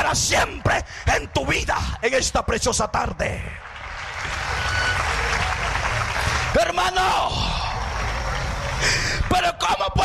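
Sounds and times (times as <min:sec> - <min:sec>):
speech: 0:00.1 - 0:04.4, 0:06.5 - 0:07.7
audience applause: 0:03.6 - 0:09.4.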